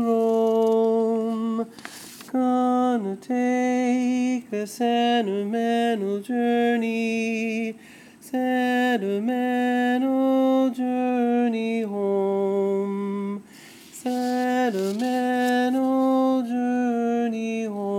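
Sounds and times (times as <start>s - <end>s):
lead vocal: 0.0s - 17.9s.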